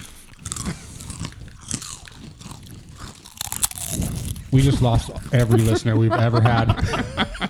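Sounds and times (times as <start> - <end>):
potato chips crunched and chewed: 0.0 - 6.0
speech: 4.5 - 7.3
laughter: 4.5 - 7.4.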